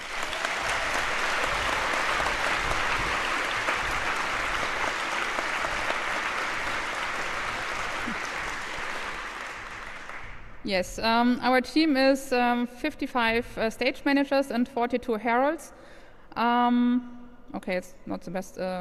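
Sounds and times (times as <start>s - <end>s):
audience applause: 0.0s - 10.5s
speech: 10.7s - 18.7s.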